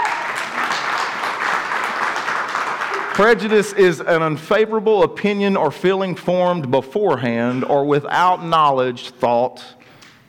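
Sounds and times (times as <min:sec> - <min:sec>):
audience applause: 0:00.0 - 0:03.9
speech: 0:03.2 - 0:09.8.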